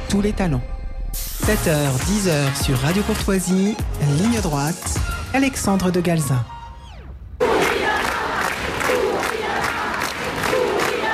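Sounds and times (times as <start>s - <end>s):
speech: 0.1s - 0.7s, 1.5s - 6.6s
large protest crowd shouting and chanting: 7.4s - 11.1s.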